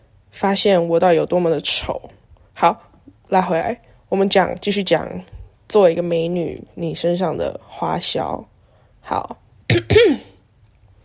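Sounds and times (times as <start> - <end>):
speech: 0.4 - 10.3
coughing: 9.7 - 10.4.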